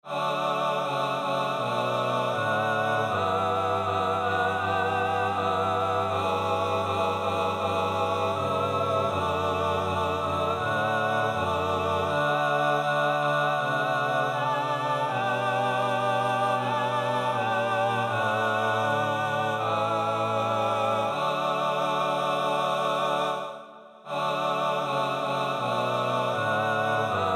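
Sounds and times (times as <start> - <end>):
male choir singing in TTBB voicing: 0.0 - 27.3.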